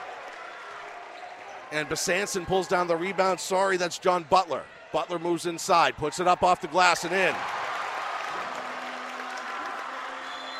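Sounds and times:
crowd clapping at a high school basketball game: 0.0s - 1.1s, 7.0s - 10.5s
crowd cheering at a high school basketball game: 0.0s - 10.5s
speech: 1.7s - 7.6s.

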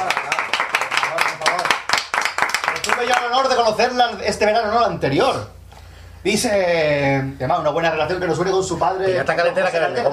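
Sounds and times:
applause: 0.0s - 3.6s
speech: 3.0s - 5.6s, 6.2s - 10.1s.

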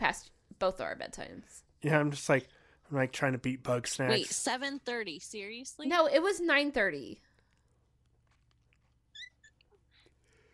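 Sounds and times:
speech: 0.1s - 7.3s
cat squeaking: 9.1s - 10.0s.

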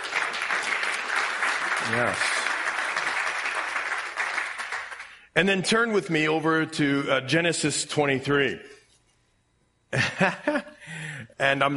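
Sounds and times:
audience clapping: 0.0s - 5.3s
speech: 1.9s - 2.4s, 5.4s - 8.7s, 10.2s - 10.7s, 11.4s - 11.7s
laughter: 10.0s - 10.9s.

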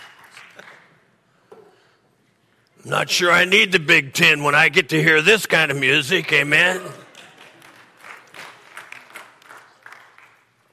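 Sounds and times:
light polite golf clap: 0.0s - 1.0s, 7.0s - 10.7s
speech: 2.8s - 7.0s.

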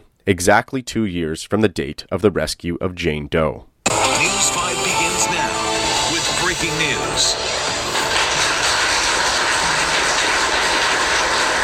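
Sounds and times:
speech: 0.3s - 3.7s, 6.6s - 7.8s
thunderous applause in a courtroom: 3.9s - 11.6s.

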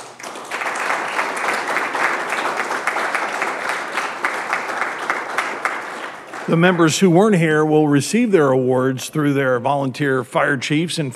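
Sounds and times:
crowd applauding: 0.0s - 7.8s
speech: 6.5s - 11.1s.

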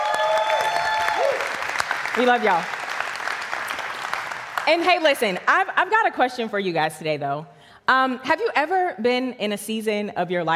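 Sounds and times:
audience applause: 0.0s - 4.8s
speech: 2.2s - 2.8s, 4.7s - 10.5s.

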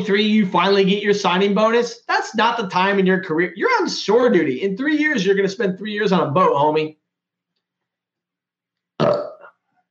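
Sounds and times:
speech: 0.0s - 7.0s
loud low gravelly burp: 9.0s - 9.6s.

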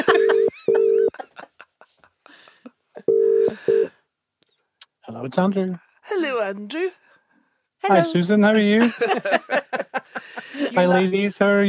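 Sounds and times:
laughter: 0.0s - 3.7s, 7.9s - 11.2s
telephone number being dialed: 0.1s - 1.1s, 3.1s - 3.9s
speech: 5.2s - 7.0s, 7.8s - 11.6s.

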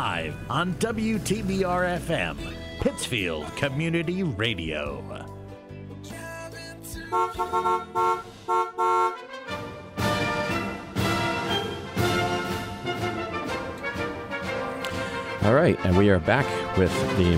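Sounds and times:
speech: 0.0s - 5.3s, 7.1s - 9.0s, 15.5s - 17.3s
brass band playing a march introduction: 7.2s - 17.3s.

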